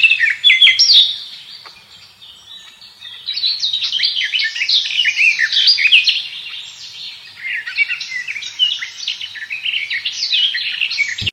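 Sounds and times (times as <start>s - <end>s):
garden warbler song: 0.0s - 11.3s.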